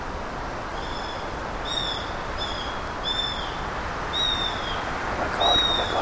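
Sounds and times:
soft outdoor hiss: 0.0s - 6.0s
male bird calling from the treetop near the nest: 0.8s - 4.8s, 5.4s - 6.0s.

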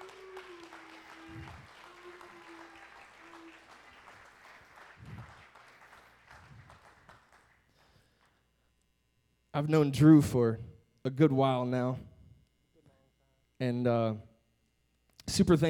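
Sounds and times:
audience applause welcoming two guests at a morning gathering: 0.0s - 7.6s
speech: 9.6s - 12.1s, 13.6s - 14.3s, 15.3s - 15.6s.

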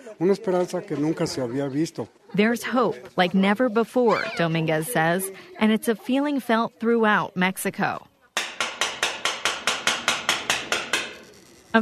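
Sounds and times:
speech: 0.1s - 8.1s
knocking on a neighbor's metal gate: 8.4s - 11.2s.

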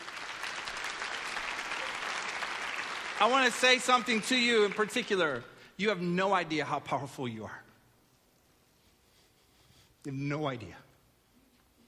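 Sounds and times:
crowd clapping: 0.0s - 5.6s
speech: 3.2s - 7.6s, 10.0s - 10.8s.

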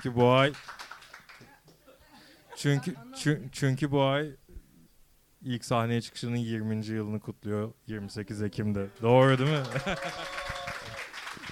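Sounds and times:
speech: 0.0s - 0.8s, 2.6s - 4.4s, 5.4s - 10.6s
audience applause: 0.0s - 1.5s, 9.1s - 11.5s
laughter: 9.3s - 11.5s.

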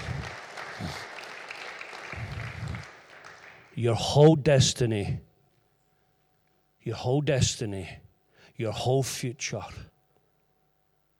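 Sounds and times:
audience applauding: 0.0s - 3.8s
speech: 3.8s - 5.3s, 6.8s - 8.0s, 8.6s - 9.9s.

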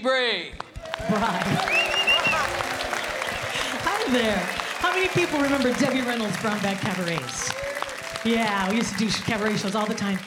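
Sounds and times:
speech: 0.0s - 1.8s, 4.1s - 10.2s
audience applause welcoming a performer onto a show: 0.6s - 10.2s.

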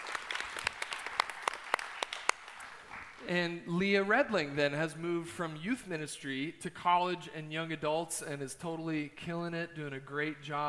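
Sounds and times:
audience round of applause: 0.0s - 3.3s
speech: 3.2s - 10.6s.

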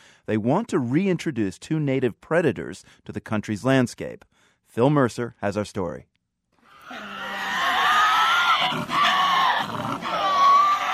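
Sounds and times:
speech: 0.2s - 6.1s
Tasmanian devil screeching: 6.7s - 10.9s.

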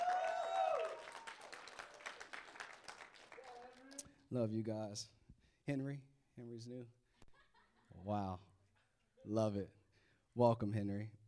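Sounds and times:
audience applause for a first-time guest: 0.0s - 4.0s
speech: 4.3s - 7.0s, 8.0s - 8.5s, 9.2s - 9.8s, 10.4s - 11.2s.

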